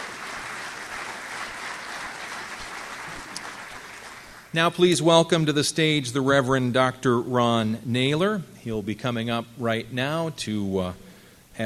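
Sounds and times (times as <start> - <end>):
audience applause: 0.0 - 4.5
speech: 4.5 - 11.0.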